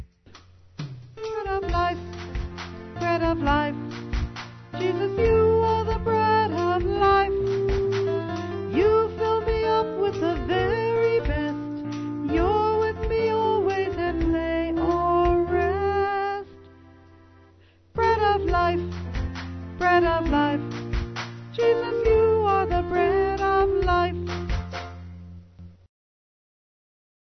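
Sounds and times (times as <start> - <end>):
person singing: 1.2 - 2.2, 2.9 - 3.9, 4.8 - 16.6, 18.0 - 19.0, 19.8 - 20.8, 21.5 - 24.4.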